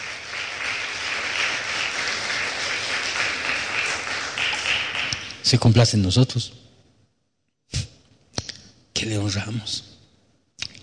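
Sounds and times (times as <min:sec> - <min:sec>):
audience applause: 0:00.0 - 0:05.4
speech: 0:05.5 - 0:06.6, 0:09.3 - 0:09.9.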